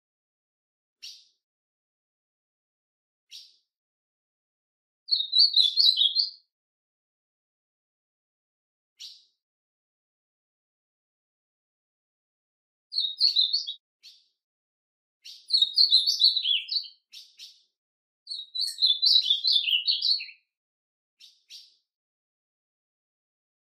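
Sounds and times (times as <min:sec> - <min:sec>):
bird twittering song: 0:01.0 - 0:01.4, 0:03.3 - 0:03.7, 0:05.1 - 0:06.5, 0:09.0 - 0:09.4, 0:12.9 - 0:14.4, 0:15.2 - 0:20.5, 0:21.2 - 0:21.9
speech: 0:05.4 - 0:06.2.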